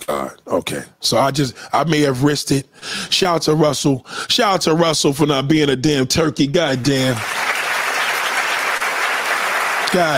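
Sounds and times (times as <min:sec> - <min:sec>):
speech: 0:00.2 - 0:07.4, 0:09.9 - 0:10.1
group applause: 0:06.8 - 0:10.1.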